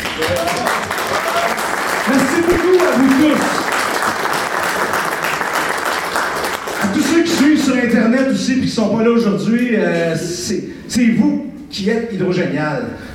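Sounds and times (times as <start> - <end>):
applause: 0.0 - 8.3
speech: 0.2 - 0.7, 8.2 - 13.1.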